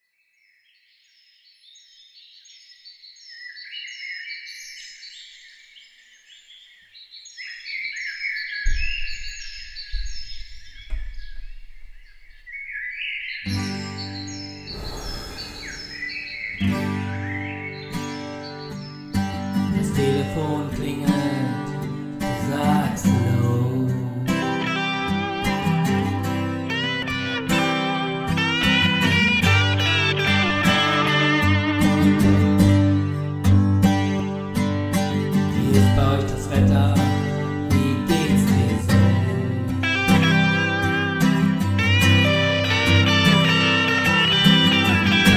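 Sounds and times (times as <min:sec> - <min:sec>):
acoustic song: 0:13.4 - 0:45.3.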